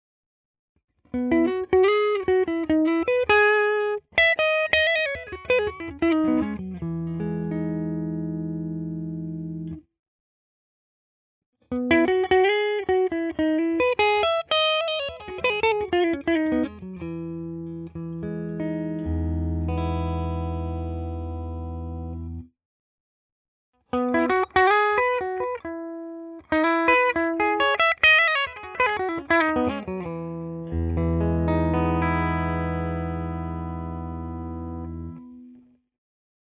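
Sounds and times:
clean guitar melody: 0:01.1 - 0:09.8, 0:11.7 - 0:22.5, 0:23.9 - 0:35.8.

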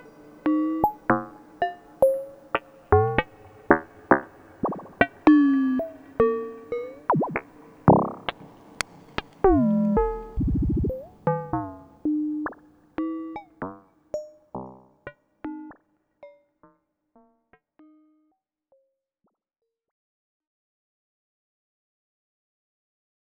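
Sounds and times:
FilterFM percussion on Behringer 2600 synthesizer: 0:00.0 - 0:11.8.

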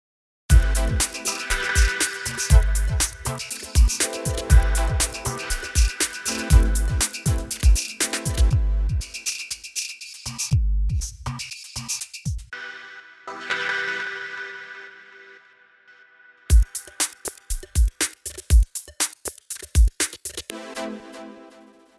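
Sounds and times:
rhythm loop: 0:00.5 - 0:12.5, 0:16.5 - 0:20.6.

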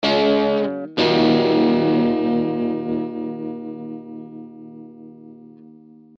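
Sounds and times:
guitar amp with British sound: 0:00.0 - 0:06.1.

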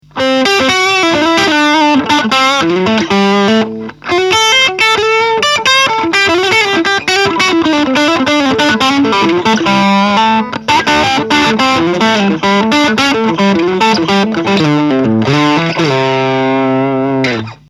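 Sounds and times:
Gretsch bluesy electric guitar lead: 0:00.0 - 0:17.6.

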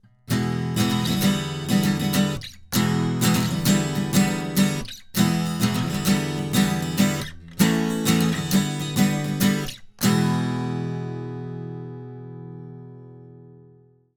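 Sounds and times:
Portico 5024 NT3 silk acoustic guitar: 0:00.0 - 0:14.1.

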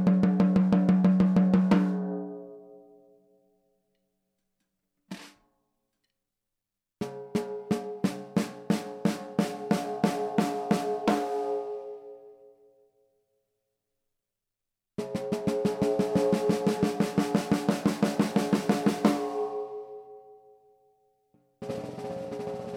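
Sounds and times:
14x8 mahogany snare drum: 0:00.2 - 0:02.0, 0:05.1 - 0:05.4, 0:07.1 - 0:11.8, 0:15.0 - 0:19.6, 0:21.7 - 0:22.7.

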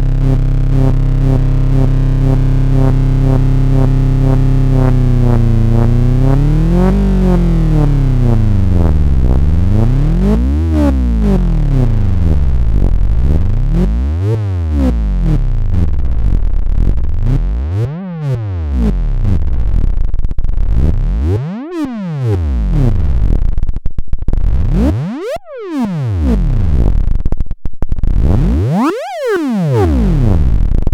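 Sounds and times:
LFO synth modulation: 0:00.1 - 0:30.9.

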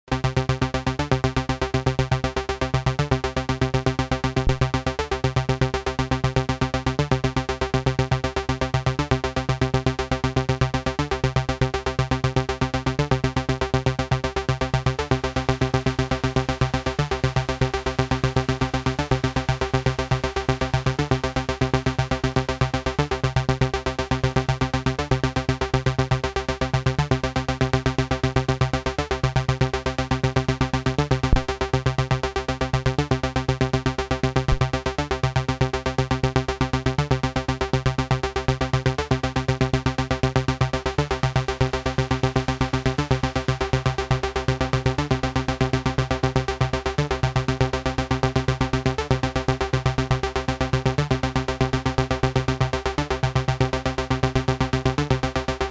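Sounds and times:
light chorus effect: 0:00.0 - 0:55.6.

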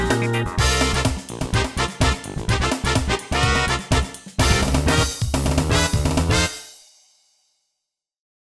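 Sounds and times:
Yamaha QS300 synthesizer blues: 0:00.0 - 0:06.5.

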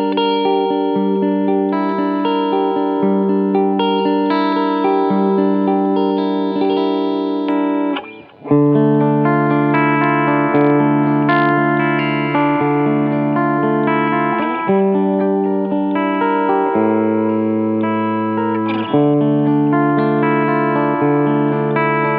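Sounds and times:
PRS Custom 24 Floyd electric guitar playing a clean riff: 0:00.0 - 0:22.1.

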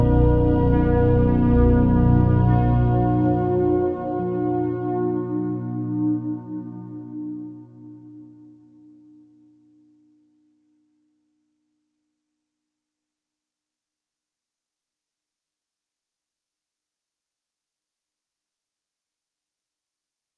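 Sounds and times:
ambient music: 0:00.0 - 0:09.0.

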